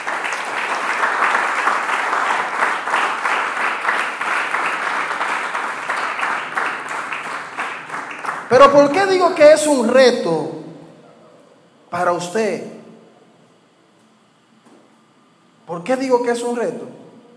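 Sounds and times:
crowd loud sustained applause: 0.0 - 9.2
speech: 8.5 - 10.6, 12.0 - 12.7, 15.9 - 16.9.

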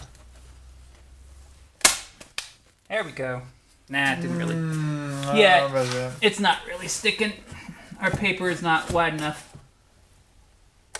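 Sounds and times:
stapler firing staples into wood: 1.8 - 2.6
speech: 2.9 - 9.5.

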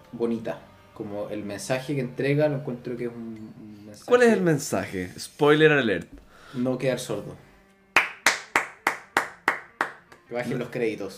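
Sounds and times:
speech: 0.1 - 7.5, 10.3 - 11.1
crisp hand claps: 8.0 - 10.4.

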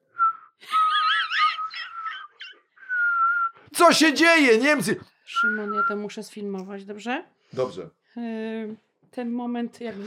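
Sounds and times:
person whistling a signal: 0.1 - 1.0, 1.6 - 3.7, 5.3 - 6.0
speech: 3.8 - 10.0.

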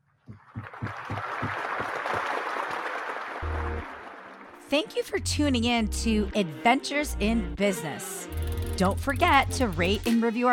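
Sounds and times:
applause: 0.3 - 4.7
speech: 4.7 - 10.5.

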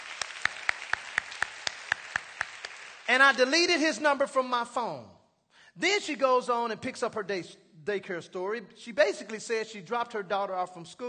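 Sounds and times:
audience applauding: 0.0 - 3.4
speech: 3.1 - 5.2, 5.8 - 11.0.

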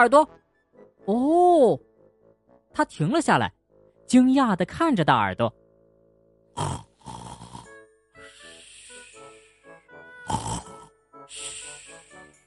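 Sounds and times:
speech: 0.0 - 0.4, 1.0 - 1.9, 2.8 - 5.6, 6.6 - 7.3
loud snoring: 6.6 - 7.9, 10.2 - 12.1.

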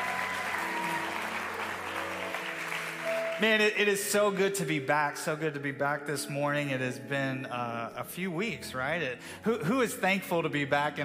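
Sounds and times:
audience clapping: 0.0 - 4.8
speech: 3.4 - 11.0.

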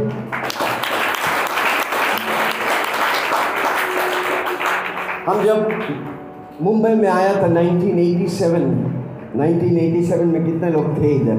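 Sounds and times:
crowd applauding: 0.0 - 6.2
speech: 5.2 - 11.3.

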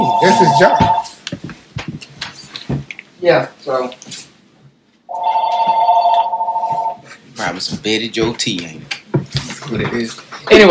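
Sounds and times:
telephone electronic warbling ring during a sports talk show: 0.0 - 1.2, 5.1 - 7.0
speech: 0.2 - 1.1, 3.2 - 4.2, 7.5 - 9.0, 9.7 - 10.6.

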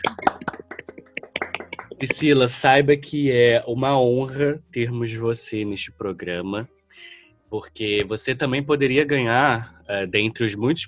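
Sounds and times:
hand clapping applause: 0.0 - 2.5
speech: 2.0 - 10.8.

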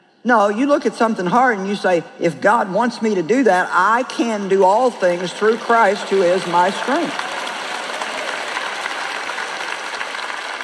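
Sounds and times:
speech: 0.2 - 7.3
audience applause: 5.4 - 10.6.

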